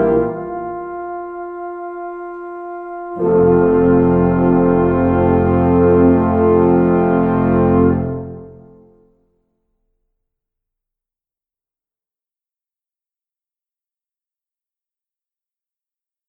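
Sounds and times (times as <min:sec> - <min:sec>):
tuba: 0:00.0 - 0:09.1.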